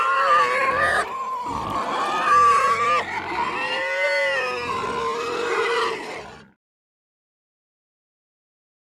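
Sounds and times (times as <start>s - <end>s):
several pigs snorting: 0.1s - 6.6s.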